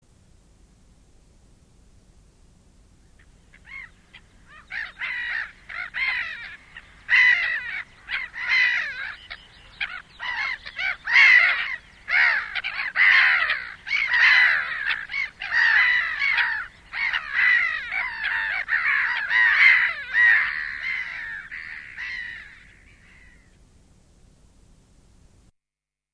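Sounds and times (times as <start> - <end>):
black-headed gull calling with harsh rasping squawks: 3.6 - 23.4.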